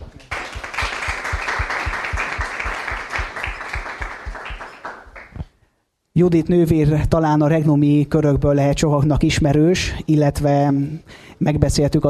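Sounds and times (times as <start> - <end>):
audience applause: 0.0 - 5.4
speech: 6.2 - 12.0.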